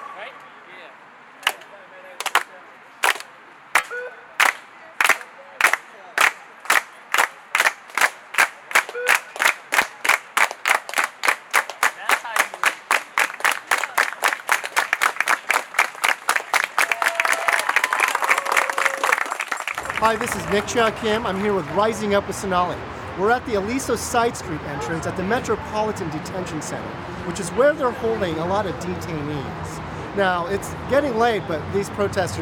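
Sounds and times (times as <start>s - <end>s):
protest crowd doing a solidarity clap: 1.4s - 2.5s, 3.0s - 22.1s
speech: 20.1s - 32.3s.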